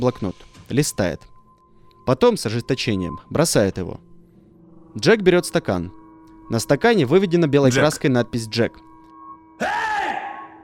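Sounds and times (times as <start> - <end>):
speech: 0.0 - 1.3, 2.1 - 4.1, 4.9 - 8.9, 9.6 - 9.8
man shouting angrily: 9.6 - 10.4.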